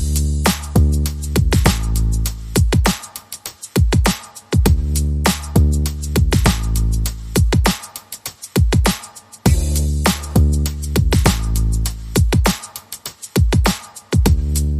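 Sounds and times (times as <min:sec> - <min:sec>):
bass: 0:00.0 - 0:03.0, 0:04.6 - 0:07.7, 0:09.5 - 0:12.5, 0:14.2 - 0:14.7
drums: 0:00.0 - 0:14.7.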